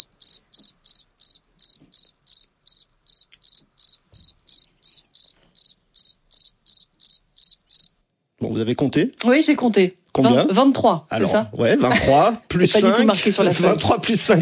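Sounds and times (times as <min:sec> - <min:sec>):
cricket chirping: 0:00.0 - 0:08.0
speech: 0:08.4 - 0:14.4.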